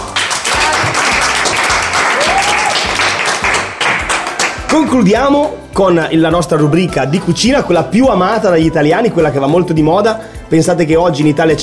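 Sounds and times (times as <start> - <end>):
applause: 0.0 - 5.0
speech: 4.7 - 11.6.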